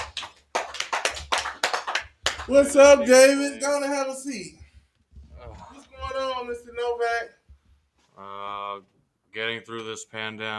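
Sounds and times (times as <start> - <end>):
hand clapping: 0.0 - 2.8
speech: 2.5 - 4.6, 6.4 - 7.4, 8.2 - 10.5.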